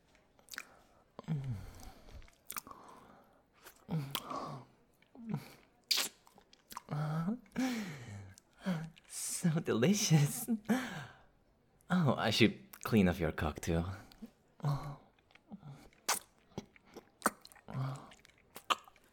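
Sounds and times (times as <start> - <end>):
wet chewing and mouth sounds of someone eating: 0.1 - 7.6, 15.0 - 19.1
speech: 9.5 - 11.1, 12.0 - 14.0.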